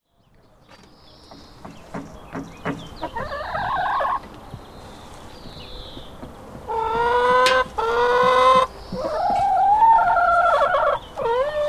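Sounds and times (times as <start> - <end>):
chicken hen calling: 2.9 - 11.6.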